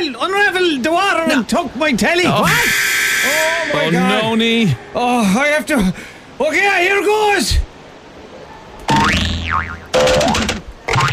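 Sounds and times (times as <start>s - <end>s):
speech: 0.1s - 7.6s
cartoon boing of a bounce: 8.9s - 11.1s.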